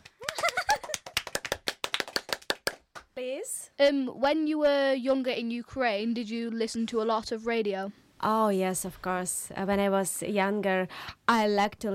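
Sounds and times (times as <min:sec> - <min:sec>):
small studio group clapping to welcome a guest: 0:00.0 - 0:03.2
speech: 0:03.2 - 0:11.9.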